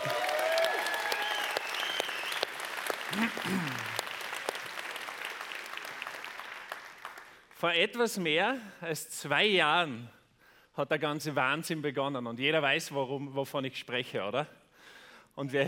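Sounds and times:
audience applause for speaker: 0.0s - 7.5s
speech: 3.1s - 3.9s, 7.6s - 10.2s, 10.8s - 14.6s, 15.4s - 15.6s.

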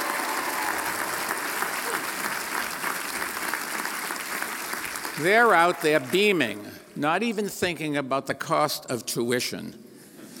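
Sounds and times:
audience applause: 0.0s - 6.6s
speech: 5.2s - 9.8s.

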